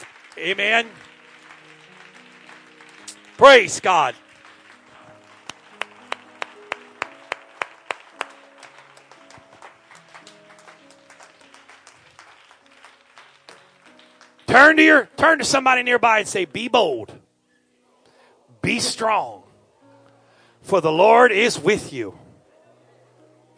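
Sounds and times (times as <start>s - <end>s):
audience clapping hands: 0.0s - 15.0s
speech: 0.4s - 1.1s, 3.4s - 4.2s, 14.5s - 17.2s, 18.6s - 19.4s, 20.6s - 22.2s.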